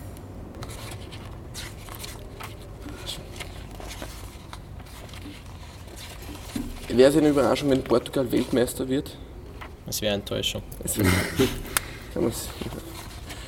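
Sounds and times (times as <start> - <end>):
pages of a magazine or booklet being leafed through: 0.6 - 8.6
speech: 6.9 - 9.2, 9.9 - 12.8
laughter: 10.9 - 12.1.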